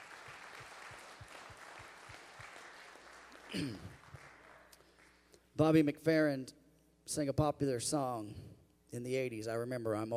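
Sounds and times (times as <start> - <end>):
audience clapping hands in praise: 0.0 - 5.5
speech: 3.5 - 4.0, 5.6 - 10.1.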